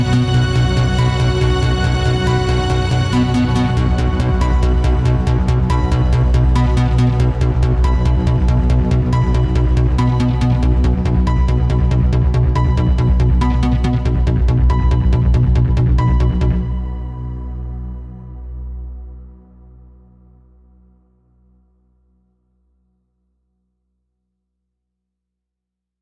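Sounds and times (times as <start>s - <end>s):
sci-fi music: 0.0s - 19.2s.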